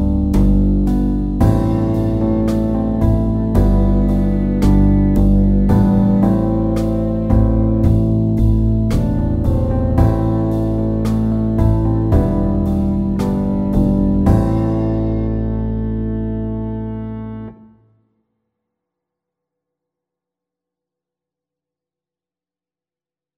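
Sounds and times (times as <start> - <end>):
slow pop ballad: 0.0 - 17.5.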